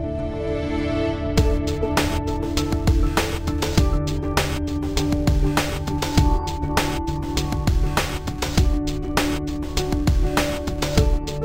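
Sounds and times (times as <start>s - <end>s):
long rock intro stinger: 0.1s - 11.4s.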